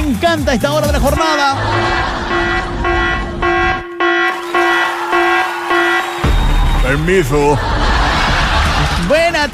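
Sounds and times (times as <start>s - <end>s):
speech: 0.2s - 2.8s, 6.9s - 7.8s, 9.1s - 9.5s
laughter: 1.1s - 3.6s, 7.0s - 9.5s
alarm horn: 1.6s - 6.6s.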